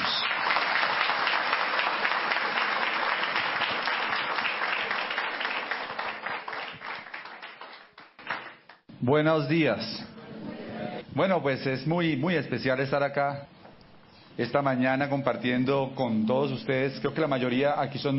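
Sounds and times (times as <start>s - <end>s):
crowd clapping: 0.0s - 8.9s
speech: 9.0s - 10.1s, 11.2s - 13.5s, 14.4s - 18.1s.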